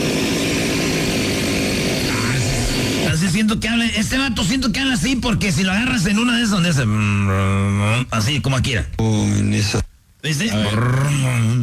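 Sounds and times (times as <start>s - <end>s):
chainsaw engine snarling: 0.0s - 3.1s
speech: 3.3s - 11.6s.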